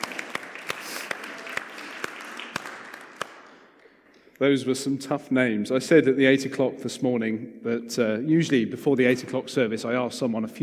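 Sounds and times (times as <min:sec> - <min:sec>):
audience applause: 0:00.0 - 0:03.7
speech: 0:04.4 - 0:10.6.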